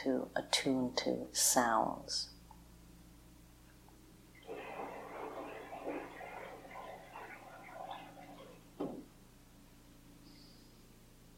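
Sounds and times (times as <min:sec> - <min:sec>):
speech: 0:00.0 - 0:02.3
flowing water: 0:04.4 - 0:09.0.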